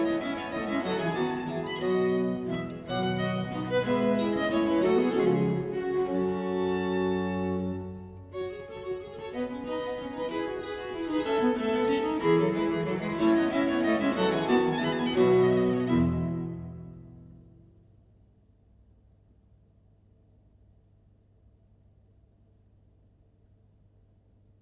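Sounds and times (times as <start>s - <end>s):
English viol consort music: 0.0s - 17.0s.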